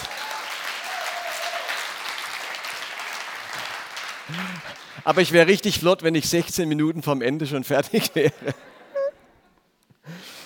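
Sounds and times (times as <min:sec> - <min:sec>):
audience applause: 0:00.0 - 0:05.6
speech: 0:04.3 - 0:08.7.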